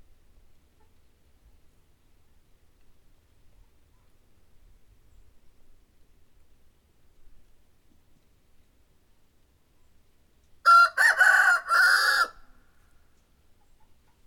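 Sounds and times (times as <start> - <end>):
rooster crowing: 10.6 - 12.6.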